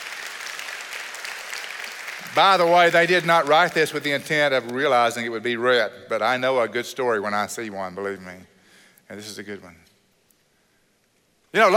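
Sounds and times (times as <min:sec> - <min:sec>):
audience applause: 0:00.0 - 0:04.1
speech: 0:02.3 - 0:08.5, 0:09.1 - 0:09.9, 0:11.5 - 0:11.7.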